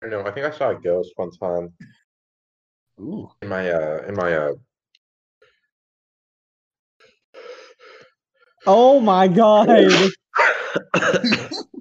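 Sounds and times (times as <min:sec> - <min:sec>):
speech: 0:00.1 - 0:02.0, 0:03.0 - 0:04.7, 0:08.6 - 0:11.7
forceful sneezes: 0:09.7 - 0:11.7.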